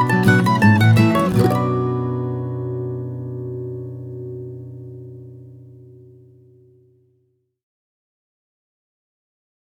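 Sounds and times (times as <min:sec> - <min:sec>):
mandolin: 0:00.0 - 0:06.7.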